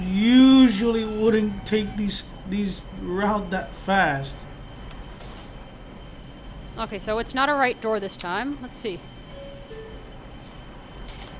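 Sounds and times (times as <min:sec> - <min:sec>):
subway train rumble: 0:00.0 - 0:11.3
speech: 0:00.2 - 0:04.5, 0:06.8 - 0:09.1.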